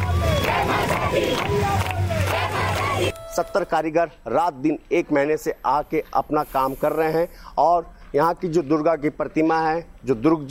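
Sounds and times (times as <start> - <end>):
crowd of devotees chanting and cheering at festival: 0.0 - 3.1
speech: 3.4 - 10.4.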